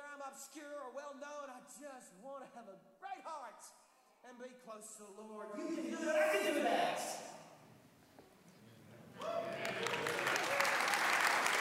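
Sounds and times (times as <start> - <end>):
speech: 0.3 - 7.4, 9.2 - 9.8
audience clapping: 9.1 - 11.6.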